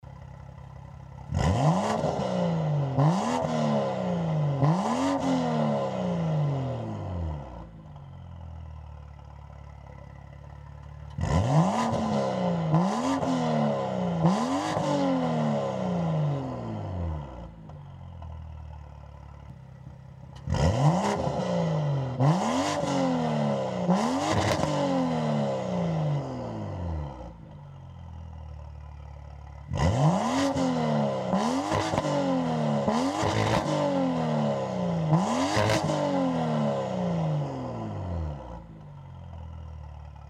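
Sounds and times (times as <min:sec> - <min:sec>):
BMW F87 M2 exhaust: 0:00.0 - 0:40.2.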